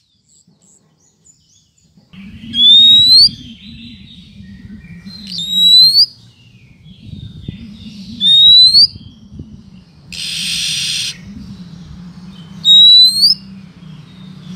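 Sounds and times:
Oriental magpie-robin rising whistle: 2.4 - 4.0, 4.7 - 6.2, 7.9 - 9.2, 10.1 - 11.4, 12.6 - 13.5.

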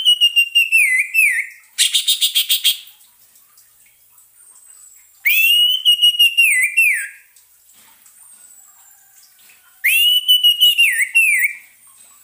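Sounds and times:
orange-headed thrush song of whistled and chirping notes: 0.0 - 2.9, 5.2 - 7.3, 9.8 - 11.7.

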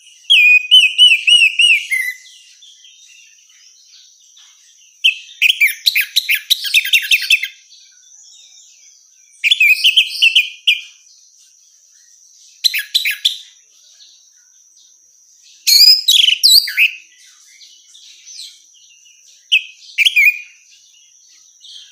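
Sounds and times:
orange-headed thrush whistled song: 0.0 - 4.0, 5.0 - 11.0, 11.9 - 13.6, 15.6 - 21.9.

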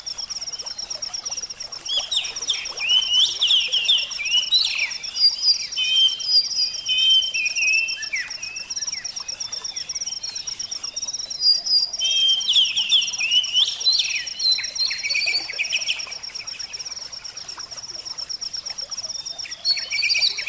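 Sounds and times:
oriental magpie-robin whistled song: 2.1 - 9.0, 11.2 - 16.0.

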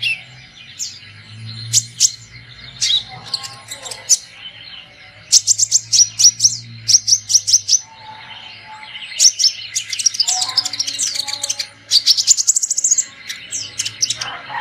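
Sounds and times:
sunbird chirping: 0.0 - 14.5.

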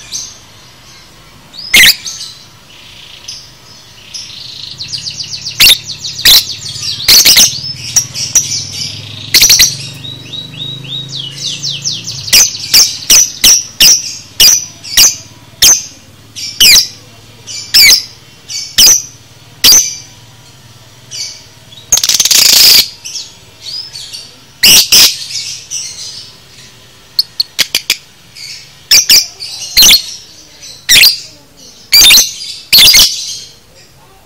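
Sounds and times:
lovebird shrill chirps and squeaks: 1.6 - 2.4, 4.2 - 15.9, 17.6 - 20.1, 21.2 - 26.3, 27.2 - 33.6.

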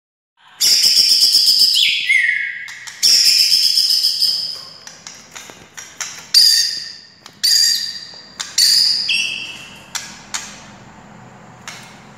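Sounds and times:
white-rumped shama singing: 0.4 - 4.9, 6.0 - 10.2.

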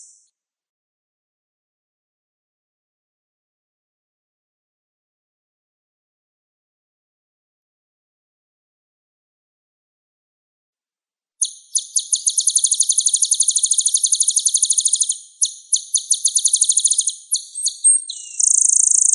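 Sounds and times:
olive-backed sunbird song: 0.0 - 0.3, 11.4 - 19.1.

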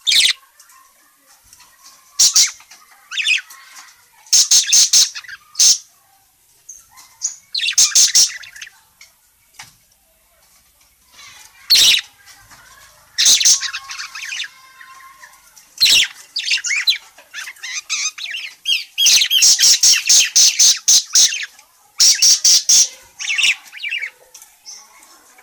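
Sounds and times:
parakeet harsh high squawks: 0.0 - 0.4, 2.2 - 3.5, 4.3 - 5.9, 7.2 - 8.7, 11.2 - 12.1, 13.1 - 15.2, 15.8 - 24.2.

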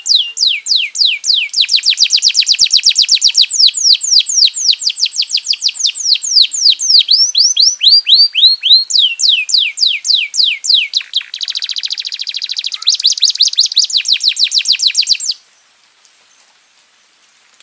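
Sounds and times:
domestic canary song: 0.0 - 15.7.

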